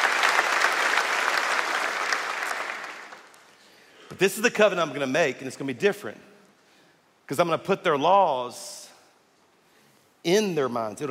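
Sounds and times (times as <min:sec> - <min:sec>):
audience clapping: 0:00.0 - 0:03.7
speech: 0:04.2 - 0:06.3, 0:07.3 - 0:08.8, 0:10.2 - 0:11.1.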